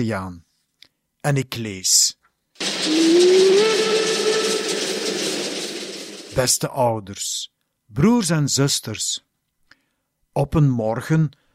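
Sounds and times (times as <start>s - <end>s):
speech: 0.0s - 0.5s, 1.2s - 2.2s, 2.8s - 4.1s, 6.3s - 9.3s, 10.4s - 11.4s
steam train whistle: 2.6s - 6.2s.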